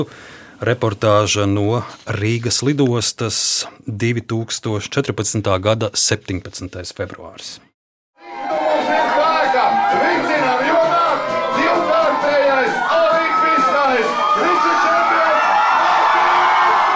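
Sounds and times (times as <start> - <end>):
speech: 0.0 - 7.7
large crowd cheering and shouting at airport: 8.2 - 16.9.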